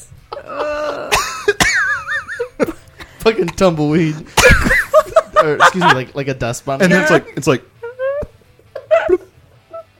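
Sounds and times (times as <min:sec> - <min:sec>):
laughter: 0:00.3 - 0:09.8
strained wheezy throat sounds: 0:00.4 - 0:01.3
dry rasping coughs: 0:00.7 - 0:03.5, 0:04.2 - 0:05.1, 0:08.7 - 0:09.4
speech: 0:03.2 - 0:04.8, 0:05.4 - 0:07.7.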